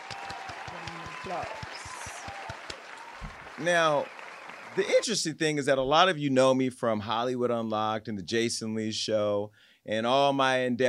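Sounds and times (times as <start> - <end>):
scattered applause from a small crowd: 0.0 - 5.3
speech: 1.2 - 1.8, 3.6 - 4.2, 4.8 - 10.8.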